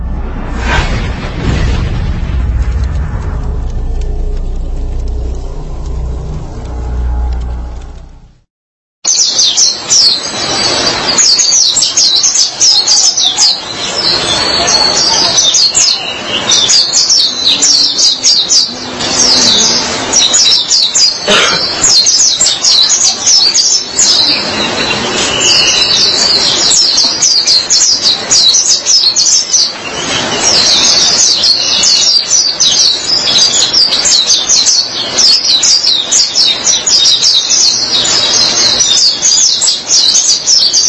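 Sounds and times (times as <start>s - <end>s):
faint low hum: 0.0s - 8.4s
white-eye twittering song: 9.1s - 40.8s.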